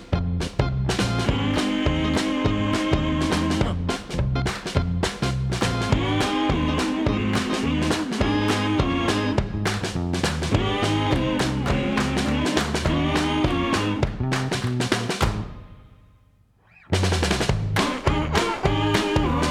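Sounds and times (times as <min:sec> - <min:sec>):
upbeat music: 0:00.2 - 0:15.6, 0:17.8 - 0:19.4.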